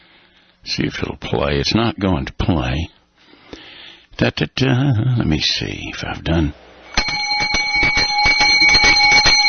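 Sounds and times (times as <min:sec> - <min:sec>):
speech: 0:00.8 - 0:03.0, 0:04.2 - 0:06.6
boys' school bell ringing: 0:06.9 - 0:09.4.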